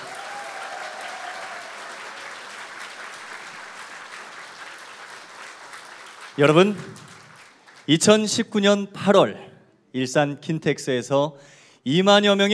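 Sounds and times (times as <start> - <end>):
audience applause: 0.0 - 7.9
speech: 6.4 - 7.1, 7.9 - 12.5.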